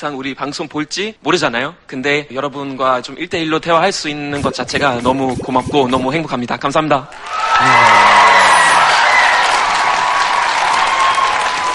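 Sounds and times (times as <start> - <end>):
speech: 0.0 - 8.2
audience applause: 7.2 - 11.7
cheers and whoops: 7.2 - 11.7.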